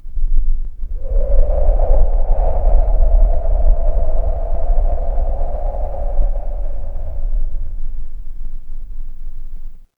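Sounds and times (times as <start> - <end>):
horror wind whisper: 0.2 - 9.8.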